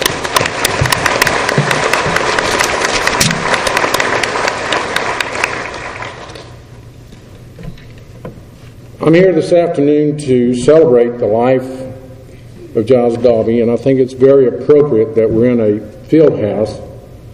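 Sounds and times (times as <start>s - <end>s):
round of applause: 0.0s - 6.6s
speech: 9.0s - 11.8s, 12.8s - 16.9s.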